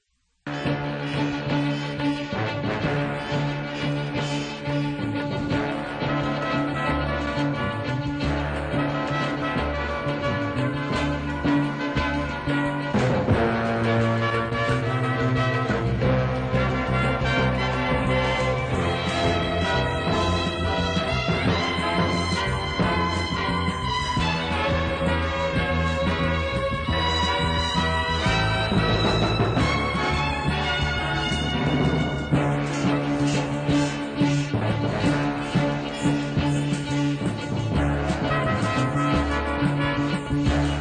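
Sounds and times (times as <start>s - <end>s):
big orchestra playing: 0.5s - 40.7s.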